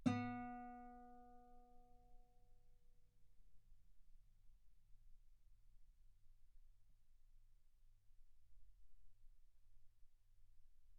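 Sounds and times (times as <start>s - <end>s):
guitar note B3: 0.0s - 1.2s.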